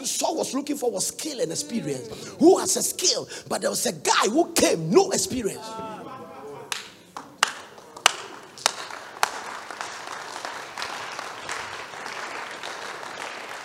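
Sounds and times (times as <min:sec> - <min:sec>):
speech: 0:00.1 - 0:06.1
laughter: 0:01.3 - 0:03.8, 0:04.9 - 0:08.1
audience clapping: 0:06.6 - 0:13.6.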